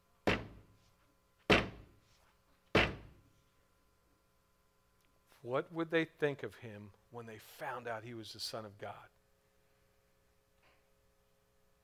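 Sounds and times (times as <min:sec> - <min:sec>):
hammer hitting wood: 0:00.3 - 0:00.7, 0:01.5 - 0:01.9, 0:02.7 - 0:03.2
speech: 0:05.4 - 0:09.2.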